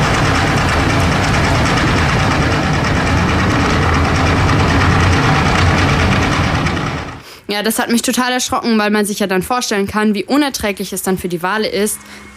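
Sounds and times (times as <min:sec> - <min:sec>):
tanker ship's engine noise recorded underwater: 0:00.0 - 0:07.2
speech: 0:07.6 - 0:12.3.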